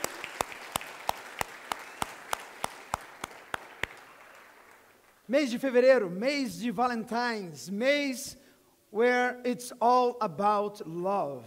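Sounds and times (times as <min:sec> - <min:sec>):
audience applauding: 0:00.0 - 0:05.2
speech: 0:05.3 - 0:11.4.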